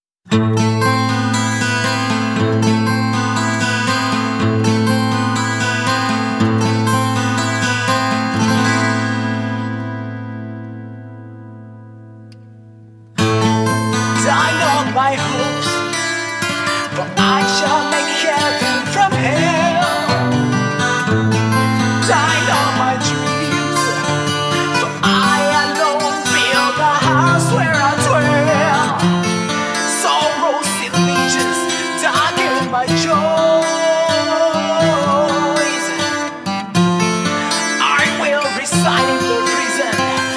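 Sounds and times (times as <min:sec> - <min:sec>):
acoustic guitar: 0:00.2 - 0:40.3.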